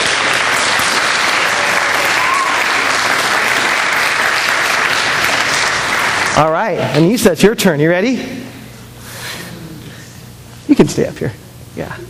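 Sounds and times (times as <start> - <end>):
audience applause: 0.0 - 6.6
speech: 6.4 - 8.4, 10.7 - 12.0.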